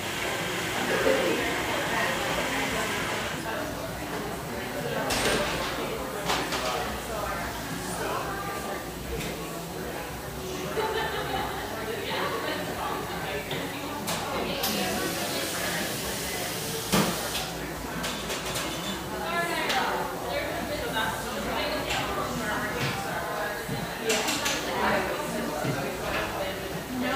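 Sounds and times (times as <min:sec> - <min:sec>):
murmur of overlapping voices in Pearl District, Portland, Oregon: 0:00.0 - 0:27.1
laughter: 0:10.5 - 0:12.0
dishes clinking and clattering: 0:18.0 - 0:19.1.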